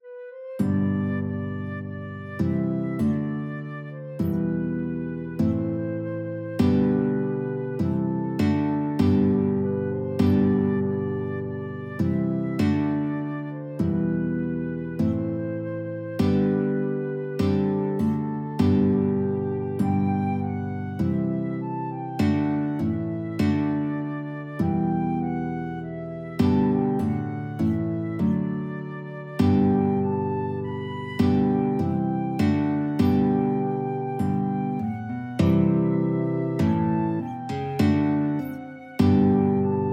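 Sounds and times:
flute and guitar duet: 0:00.0 - 0:39.9.

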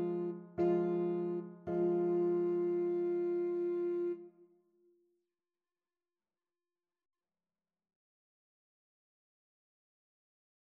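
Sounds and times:
saxophone: 0:00.0 - 0:04.3.

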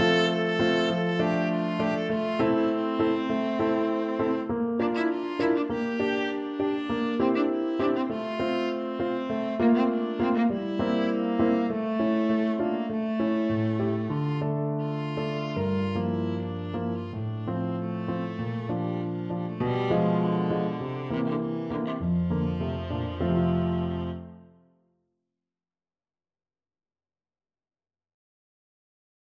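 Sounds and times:
viola: 0:00.0 - 0:24.6.

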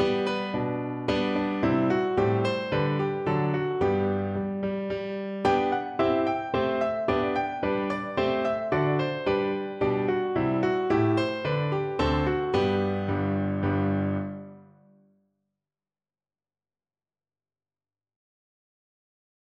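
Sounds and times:
piano: 0:00.0 - 0:15.2.

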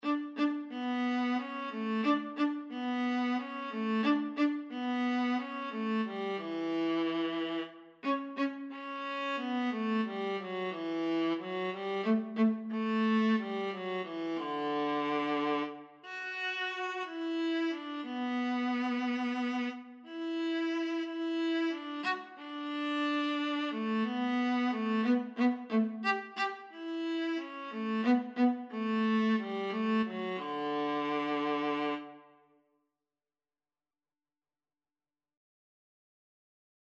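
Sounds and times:
viola: 0:00.0 - 0:32.4.

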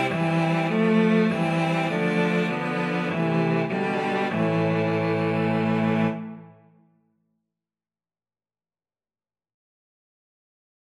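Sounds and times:
cello quartet: 0:00.0 - 0:06.6.

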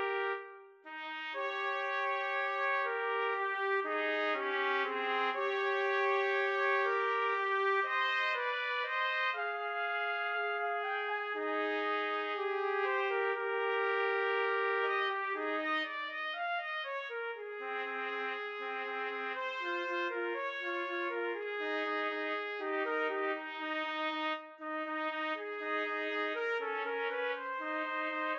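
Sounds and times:
trumpet trio playing a romance: 0:00.0 - 0:28.3.

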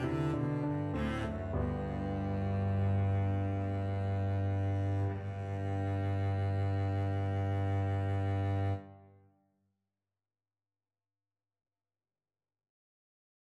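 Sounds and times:
double bass: 0:00.0 - 0:08.8.

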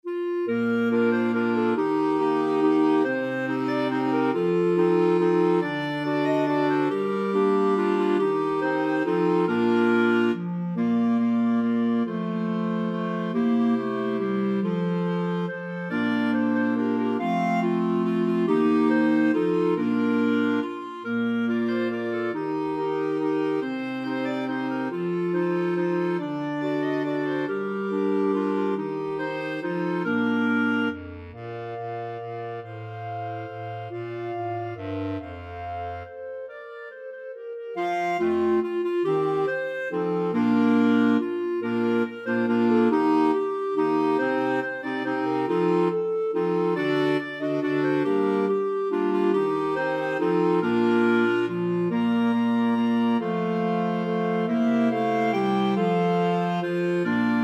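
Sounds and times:
clarinet choir: 0:00.0 - 0:57.4.

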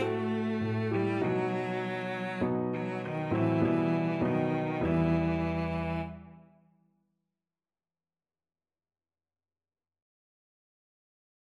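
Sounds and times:
cello: 0:00.0 - 0:06.6.

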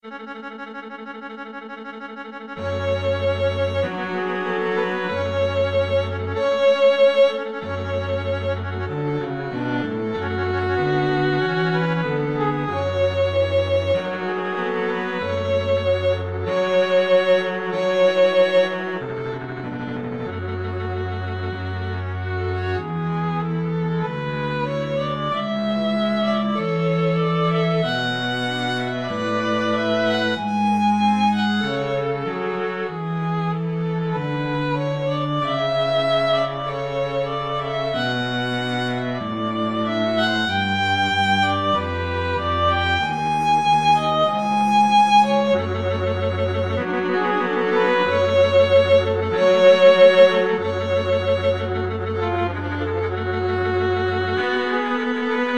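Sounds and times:
string trio scene finale: 0:00.0 - 0:55.5.

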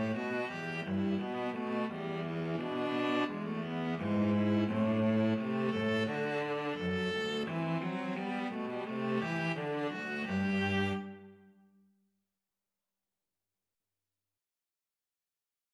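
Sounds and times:
viola and cello duet playing a hornpipe: 0:00.0 - 0:11.3.

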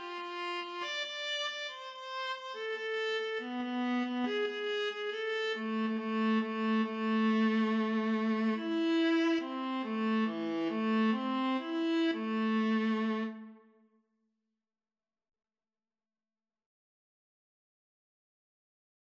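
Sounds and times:
viola duet: 0:00.0 - 0:13.6.

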